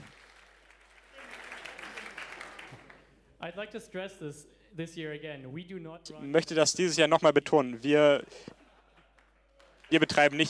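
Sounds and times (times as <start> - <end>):
audience applause from a sizable crowd: 0.0 - 3.1, 9.6 - 10.4
speech: 3.4 - 8.6, 9.9 - 10.4.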